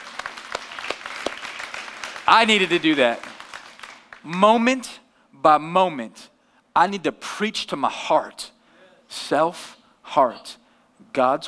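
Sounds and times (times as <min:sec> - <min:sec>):
audience clapping: 0:00.0 - 0:04.7
speech: 0:02.3 - 0:03.3, 0:04.2 - 0:08.5, 0:09.1 - 0:11.4.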